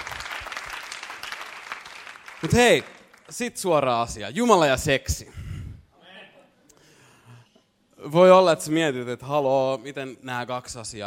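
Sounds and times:
audience applause: 0.0s - 3.3s
speech: 2.4s - 5.4s, 8.0s - 11.0s.

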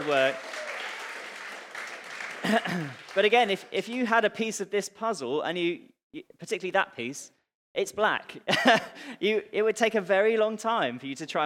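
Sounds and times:
speech: 0.0s - 0.6s, 2.4s - 11.4s
audience applause: 0.0s - 3.7s.

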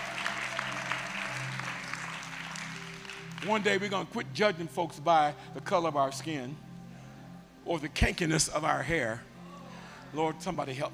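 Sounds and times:
audience clapping: 0.0s - 3.9s
speech: 3.4s - 6.6s, 7.6s - 9.3s, 10.1s - 10.9s.

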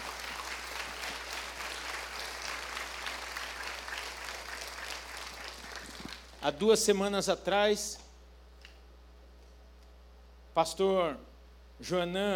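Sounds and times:
audience applauding: 0.0s - 6.4s
speech: 6.4s - 8.0s, 10.6s - 12.3s.

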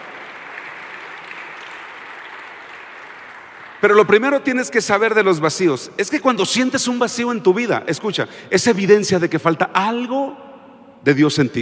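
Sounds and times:
audience applause: 0.0s - 4.2s
speech: 3.8s - 10.4s, 11.0s - 11.6s.

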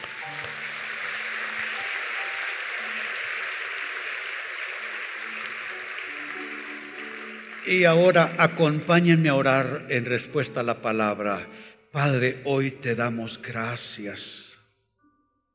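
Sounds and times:
audience applause: 0.0s - 10.2s
speech: 7.6s - 14.5s.

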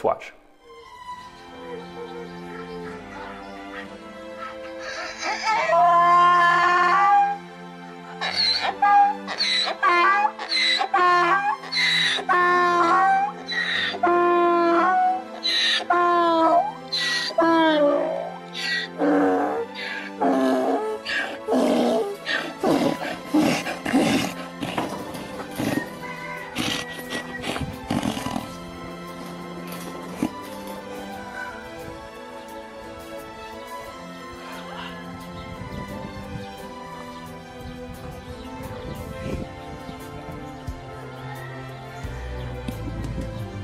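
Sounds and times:
rescued donkey braying on seeing rescuer: 1.6s - 32.2s, 34.2s - 35.2s.

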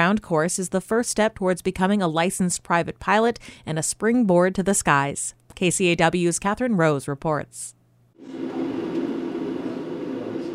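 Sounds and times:
speech: 0.0s - 8.6s
single-engine airplane low hum echoing through a classroom: 8.2s - 10.5s.

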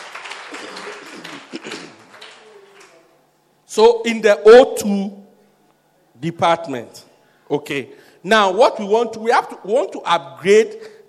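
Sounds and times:
audience clapping: 0.0s - 3.1s
speech: 3.7s - 5.2s, 6.2s - 10.9s.

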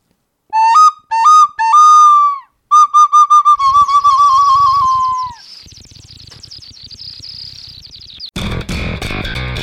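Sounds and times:
person whistling a bird imitation: 0.6s - 5.5s
soft busy warbling: 3.0s - 8.4s.

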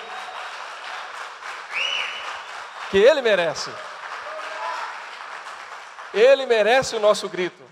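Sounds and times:
audience applause: 0.0s - 7.4s
speech: 2.9s - 3.9s, 6.1s - 7.7s.

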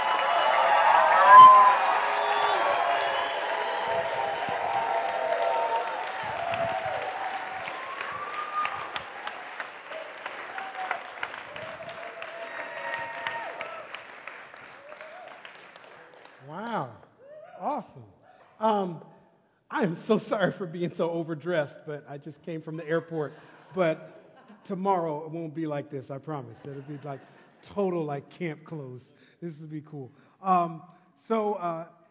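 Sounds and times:
audience applause: 0.0s - 16.5s
speech: 20.0s - 24.1s, 24.7s - 32.0s
laughter: 23.0s - 25.1s, 26.3s - 28.1s.

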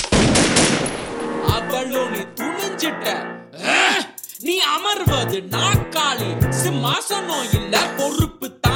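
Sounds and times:
gunfire: 0.1s - 1.2s
speech: 1.8s - 3.6s, 4.4s - 8.6s.

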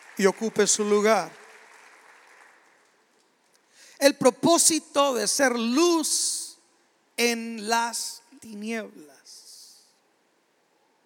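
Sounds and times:
audience applause: 0.0s - 3.1s
speech: 0.2s - 1.4s, 4.0s - 6.4s, 7.2s - 9.2s.

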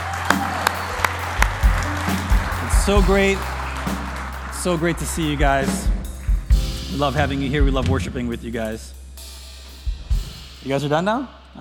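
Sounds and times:
audience applause for Team Challenge at a church worship gathering: 0.0s - 6.6s
speech: 2.9s - 4.0s, 4.6s - 6.0s, 6.9s - 9.0s, 10.6s - 11.5s.

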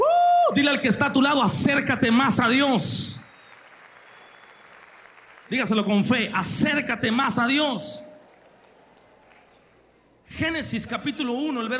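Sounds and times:
speech: 0.5s - 3.2s, 5.5s - 8.1s, 10.4s - 11.7s
audience applause: 2.9s - 6.6s, 8.2s - 10.2s.

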